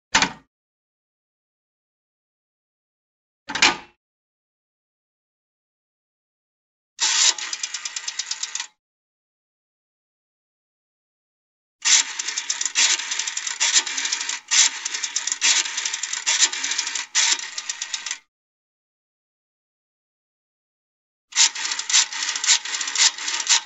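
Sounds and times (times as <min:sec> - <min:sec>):
telephone number dialing: 0:07.0 - 0:08.7, 0:11.9 - 0:18.2, 0:21.4 - 0:23.6.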